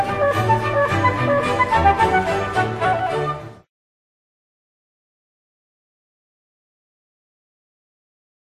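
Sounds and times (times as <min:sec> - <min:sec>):
orchestral suite: 0:00.0 - 0:03.7.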